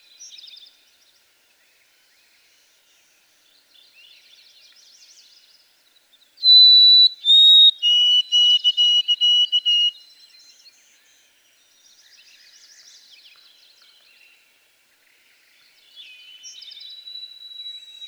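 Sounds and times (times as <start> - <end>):
white-throated sparrow song: 6.4 - 10.0, 16.0 - 18.0.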